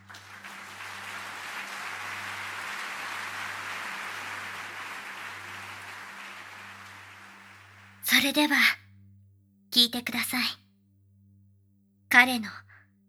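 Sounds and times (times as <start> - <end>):
audience applause: 0.0 - 8.0
speech: 8.1 - 8.8, 9.8 - 10.6, 12.2 - 12.6.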